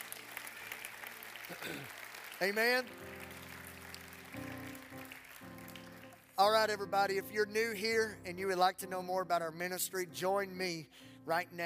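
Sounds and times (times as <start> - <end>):
crowd clapping: 0.0 - 6.7
speech: 1.5 - 3.3, 6.4 - 11.6.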